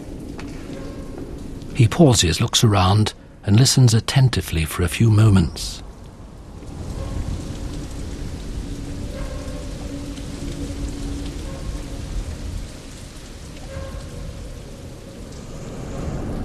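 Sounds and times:
water dripping onto concrete floor: 0.0s - 1.9s, 5.8s - 16.4s
speech: 1.8s - 5.8s.

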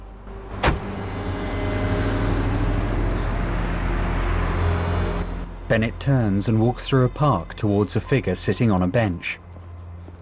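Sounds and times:
chauffeur-driven car departure: 0.2s - 6.5s
chauffeur-driven car door: 0.5s - 1.0s
speech: 5.7s - 9.4s.

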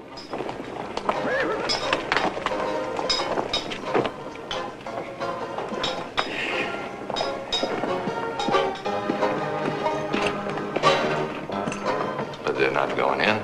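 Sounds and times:
horses' hooves clopping along a western town street: 0.0s - 13.4s
horse whinnying: 1.2s - 2.0s, 6.2s - 7.0s
people speaking: 12.4s - 13.4s.

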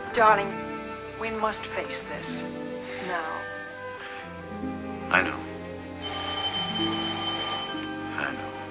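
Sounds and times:
speech: 0.2s - 3.5s, 5.1s - 5.4s
telephone ringing: 6.0s - 8.6s.

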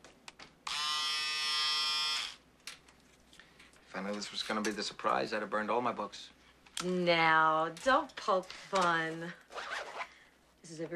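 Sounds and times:
electric razor buzzing: 0.7s - 2.4s
speech: 3.9s - 9.5s, 10.7s - 10.9s.

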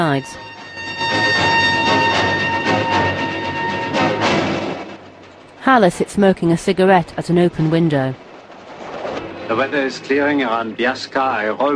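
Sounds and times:
speech: 0.0s - 0.5s, 5.7s - 8.2s, 9.5s - 11.7s
thin sustained whining tones from train: 0.0s - 11.7s
train rolling along a snow-covered mountainside: 0.0s - 11.7s.

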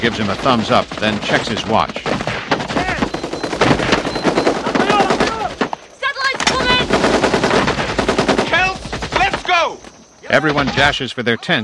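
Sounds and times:
speech: 0.0s - 2.2s, 10.3s - 11.6s
submachine gun firing at a silhouette target on a training range: 3.1s - 9.5s.

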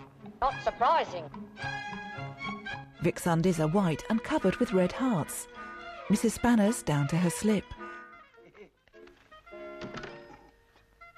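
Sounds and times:
speech: 0.4s - 2.0s, 3.0s - 7.8s
front door: 5.4s - 11.1s.

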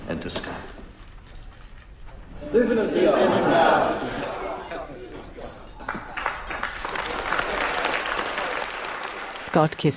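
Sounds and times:
speech: 0.1s - 0.8s, 2.4s - 4.3s, 9.5s - 9.9s
wedding guests applauding after a toast: 5.8s - 9.9s.

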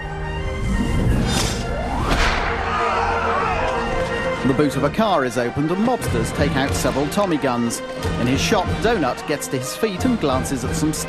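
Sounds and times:
fight-scene swooshes: 0.5s - 3.6s
speech: 4.4s - 11.0s.

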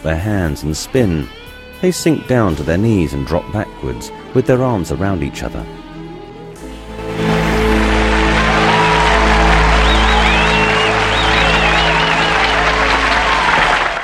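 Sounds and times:
speech: 0.0s - 5.8s
music tones: 0.0s - 14.0s
audience applause: 7.0s - 14.0s
whistles and cheers: 7.7s - 14.0s.

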